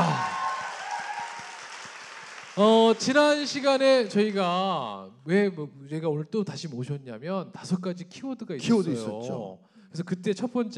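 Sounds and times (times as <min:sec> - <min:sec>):
crowd applauding: 0:00.0 - 0:04.7
speech: 0:02.6 - 0:10.7.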